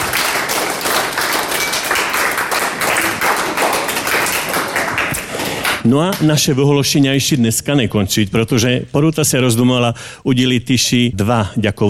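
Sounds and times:
applause at a school award ceremony: 0.0 - 6.3
speech: 5.8 - 11.8.

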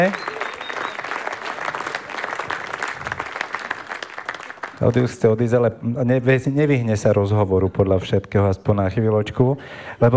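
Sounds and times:
speech: 0.0 - 0.3, 4.8 - 10.1
long audience applause: 0.0 - 5.2.

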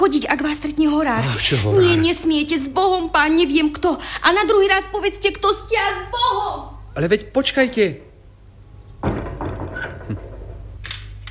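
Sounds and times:
speech: 0.0 - 8.1
door shutting with a solid thunk: 9.0 - 11.2.

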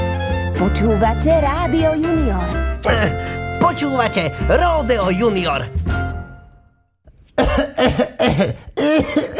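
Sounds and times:
speech: 0.6 - 5.9, 7.6 - 9.3
person coughing after choking: 7.4 - 9.3.

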